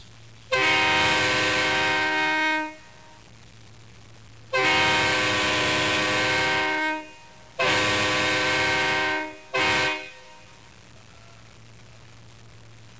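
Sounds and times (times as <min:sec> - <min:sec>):
train horn: 0:00.5 - 0:03.2, 0:04.5 - 0:10.6.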